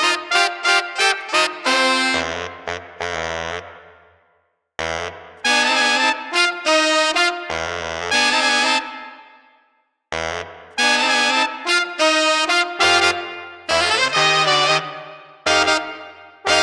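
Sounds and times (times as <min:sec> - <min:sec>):
funky street brass combo playing without drums: 0:00.0 - 0:03.2, 0:05.4 - 0:09.0, 0:10.8 - 0:16.6.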